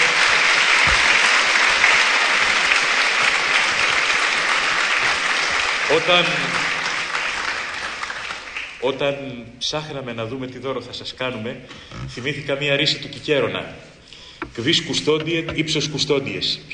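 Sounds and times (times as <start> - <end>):
audience applause: 0.0 - 8.8
speech: 5.9 - 6.6, 8.8 - 13.9, 14.6 - 16.7.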